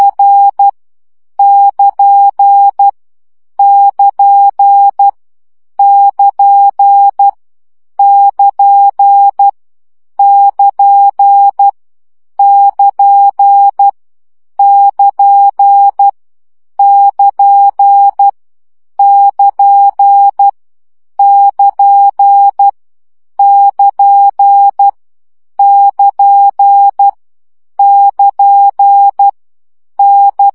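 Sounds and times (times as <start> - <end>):
Morse code practice opening at 10 baud: 0.0 - 0.7, 1.4 - 2.9, 3.6 - 5.2, 5.8 - 7.4, 8.0 - 9.5, 10.2 - 11.7, 12.4 - 13.9, 14.6 - 16.1, 16.8 - 18.3, 19.0 - 20.5, 21.2 - 22.7, 23.4 - 25.0, 25.6 - 27.2, 27.8 - 29.4, 30.0 - 30.5.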